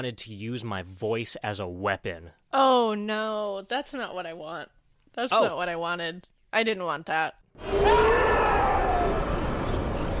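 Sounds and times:
speech: 0:00.0 - 0:08.2
man screaming in a film: 0:07.7 - 0:09.2.

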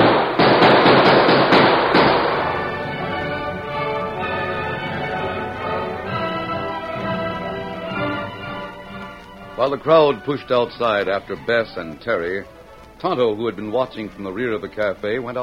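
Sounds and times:
gunshots fired in a shootout: 0:00.0 - 0:04.4
orchestral music: 0:01.6 - 0:15.4
speech: 0:09.6 - 0:15.4.

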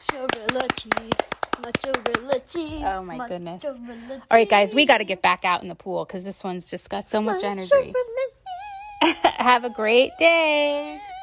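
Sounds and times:
hand clapping for a reader: 0:00.0 - 0:02.7
speech: 0:00.1 - 0:08.3, 0:09.4 - 0:11.1.

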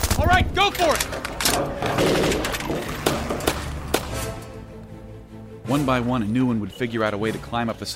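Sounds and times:
speech: 0:00.2 - 0:02.8, 0:05.7 - 0:07.9
gunfire: 0:01.8 - 0:04.3.

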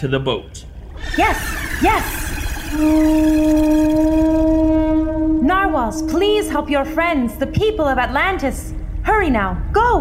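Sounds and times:
speech: 0:00.0 - 0:09.9
horn-like call summoning narwhals: 0:00.9 - 0:08.8.

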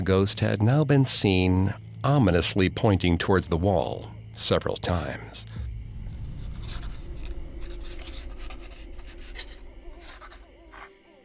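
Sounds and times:
speech: 0:00.0 - 0:05.6
pen scratching as a letter is written in a bedroom at Raynham Hall: 0:06.3 - 0:11.0.

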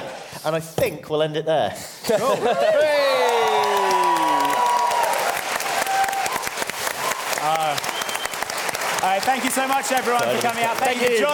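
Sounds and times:
speech: 0:00.4 - 0:03.2, 0:09.2 - 0:11.3
laughter: 0:02.1 - 0:03.2
applause: 0:03.2 - 0:11.3.

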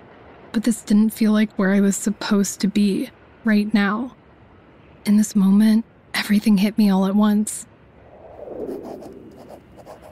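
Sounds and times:
speech: 0:00.5 - 0:04.2, 0:05.0 - 0:07.7
pen writing in a journal at a bookstore in Manhattan: 0:09.4 - 0:10.1.

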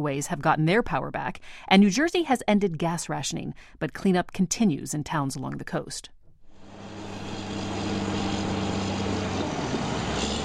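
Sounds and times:
speech: 0:00.0 - 0:06.2
bulldozer diesel engine pushing sand on a beach: 0:06.6 - 0:10.4.

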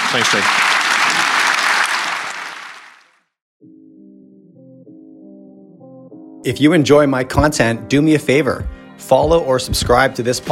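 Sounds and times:
audience applause: 0:00.0 - 0:03.2
speech: 0:00.1 - 0:01.0, 0:06.4 - 0:10.5.

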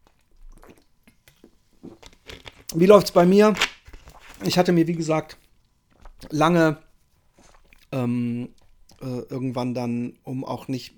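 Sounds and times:
sip of a drink: 0:00.0 - 0:02.1, 0:07.3 - 0:09.1
speech: 0:02.7 - 0:03.7, 0:04.4 - 0:05.4, 0:06.2 - 0:06.8, 0:07.9 - 0:10.9.

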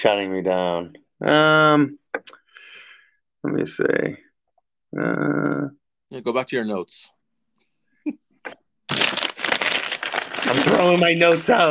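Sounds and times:
speech: 0:00.0 - 0:02.4, 0:03.4 - 0:04.2, 0:04.9 - 0:07.2, 0:08.0 - 0:09.1, 0:10.4 - 0:11.7
bag of chips rustling: 0:08.9 - 0:11.7.

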